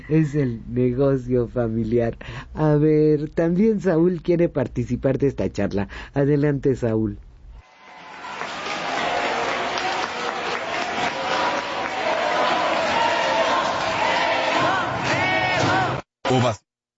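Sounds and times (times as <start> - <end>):
speech: 0.0 - 7.3
stadium crowd ovation: 7.6 - 16.0.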